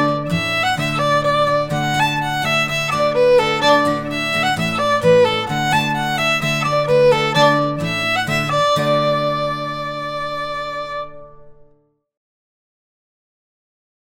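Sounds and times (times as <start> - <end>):
polka tune: 0.0 - 10.9.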